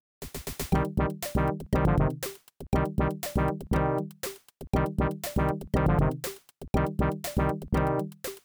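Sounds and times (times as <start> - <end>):
heartbeat: 0.3 - 8.4.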